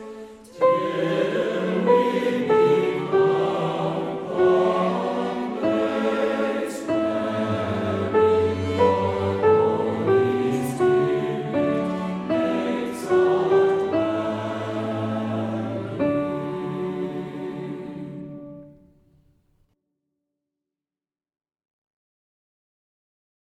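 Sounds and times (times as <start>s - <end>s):
soprano singing: 0.0s - 18.8s.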